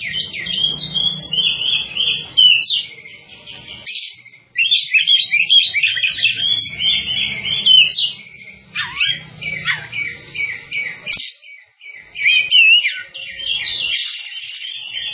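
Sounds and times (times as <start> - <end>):
Java sparrow song: 0.0 - 15.1.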